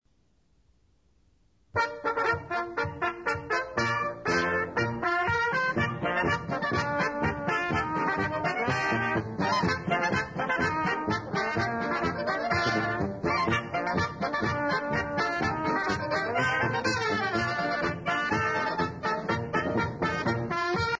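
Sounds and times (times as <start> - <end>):
polka music: 1.7 - 20.9.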